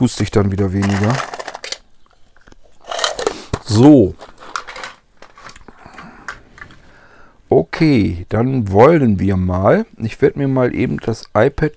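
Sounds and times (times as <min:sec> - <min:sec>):
speech: 0:00.0 - 0:01.4, 0:03.7 - 0:04.3, 0:07.8 - 0:11.7
taking a sweet from a tin: 0:00.7 - 0:06.8.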